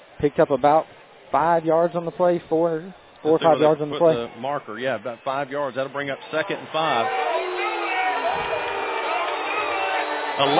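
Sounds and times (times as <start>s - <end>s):
speech: 0.2s - 7.2s, 10.4s - 10.5s
stadium crowd cheering: 2.5s - 10.5s.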